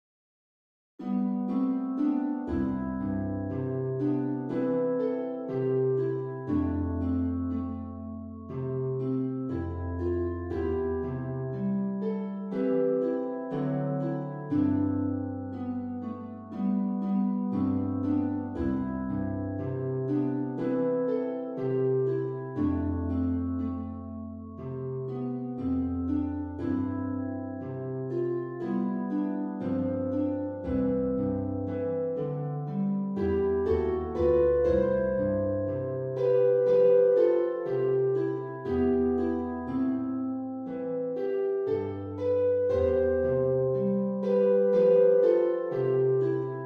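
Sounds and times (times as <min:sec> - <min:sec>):
harp: 0:01.0 - 0:46.6.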